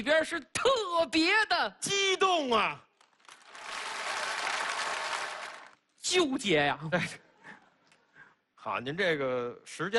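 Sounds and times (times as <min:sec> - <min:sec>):
speech: 0:00.0 - 0:02.9, 0:06.1 - 0:07.2, 0:08.6 - 0:09.9
audience applause at a live comedic performance: 0:03.1 - 0:05.8.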